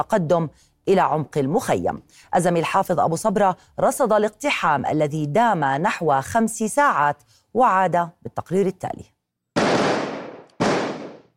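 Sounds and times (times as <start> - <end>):
speech: 0.0 - 9.1
gunshots in an exchange of gunfire: 9.6 - 11.3.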